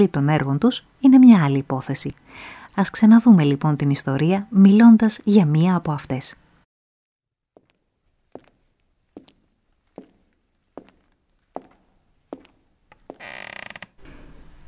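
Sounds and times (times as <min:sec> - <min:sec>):
speech: 0:00.0 - 0:06.4
piano stool creaking: 0:13.0 - 0:14.6.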